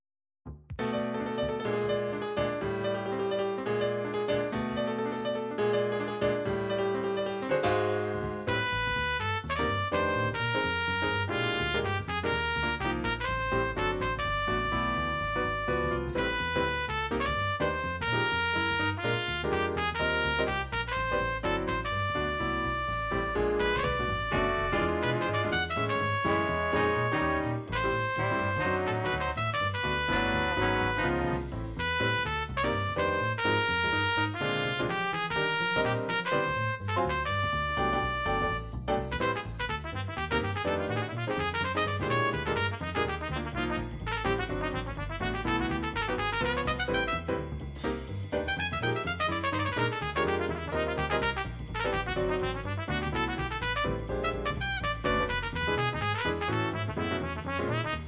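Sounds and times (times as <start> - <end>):
jazz music: 0.5 - 58.0.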